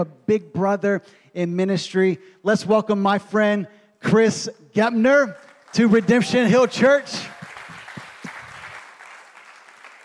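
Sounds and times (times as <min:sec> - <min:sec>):
speech: 0:00.0 - 0:07.4
church congregation clapping welcoming a guest pastor: 0:05.3 - 0:10.0.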